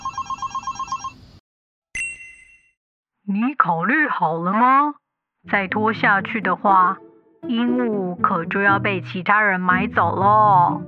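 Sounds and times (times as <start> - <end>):
telephone ringing: 0.0 - 1.2
speech: 3.3 - 10.8.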